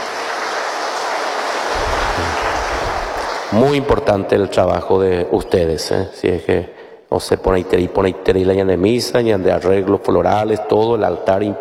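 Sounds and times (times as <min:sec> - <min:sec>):
audience applause: 0:00.0 - 0:03.9
speech: 0:03.5 - 0:11.5.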